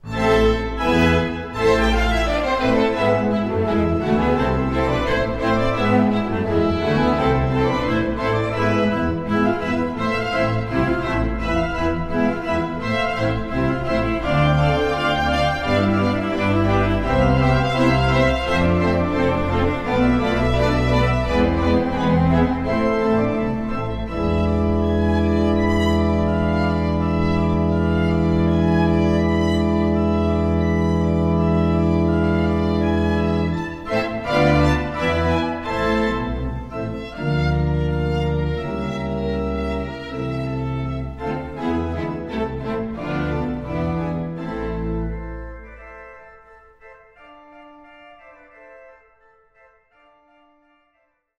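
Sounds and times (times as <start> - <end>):
organ concerto fragment in A minor: 0.0 - 51.0.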